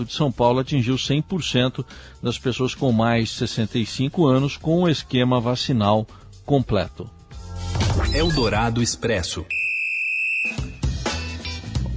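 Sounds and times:
speech: 0:00.0 - 0:07.2, 0:08.0 - 0:09.6
referee whistle: 0:09.5 - 0:10.9.

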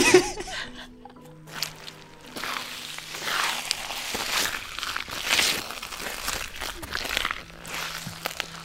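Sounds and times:
person chuckling: 0:00.0 - 0:01.2
squelching footsteps through soggy marshland: 0:01.2 - 0:08.6.

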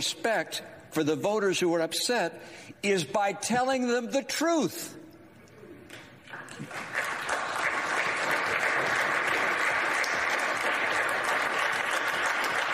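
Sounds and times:
speech: 0:00.0 - 0:05.0
audience applause in played clip: 0:06.3 - 0:12.7.

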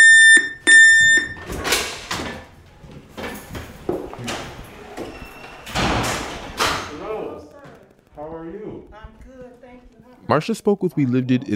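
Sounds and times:
harsh high electronic door entry buzzer: 0:00.0 - 0:01.5
speech: 0:09.8 - 0:11.5.

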